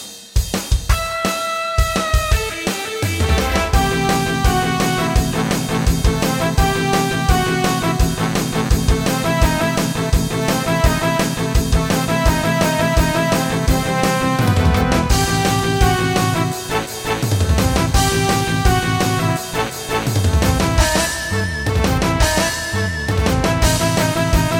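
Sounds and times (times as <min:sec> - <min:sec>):
rock music: 0:00.4 - 0:24.5.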